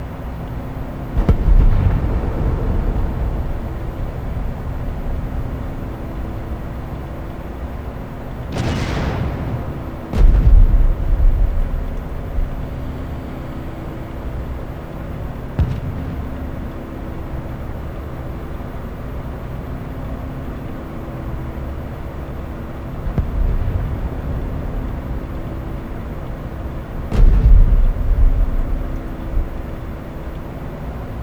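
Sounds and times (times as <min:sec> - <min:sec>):
ambient air: 0:00.0 - 0:31.2.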